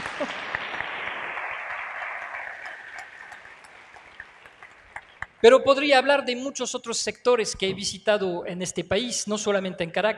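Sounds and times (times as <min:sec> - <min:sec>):
laughter: 0:00.0 - 0:00.8
audience applause: 0:00.0 - 0:05.4
speech: 0:05.4 - 0:10.1.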